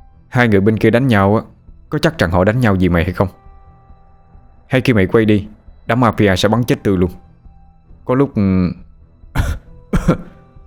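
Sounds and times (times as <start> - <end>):
speech: 0.4 - 3.4, 4.7 - 7.3, 8.0 - 10.3
man coughing heavily: 9.4 - 10.4.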